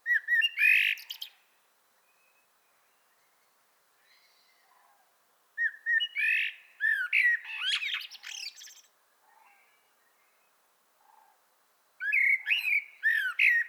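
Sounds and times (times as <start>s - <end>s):
Common blackbird Turdus merula singing: 0.1s - 1.4s, 5.6s - 8.9s, 12.0s - 13.6s.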